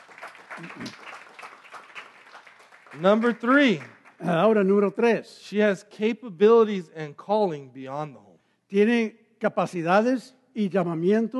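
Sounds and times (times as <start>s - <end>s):
audience applause: 0.0s - 4.6s
speech: 0.6s - 1.0s, 2.9s - 11.3s.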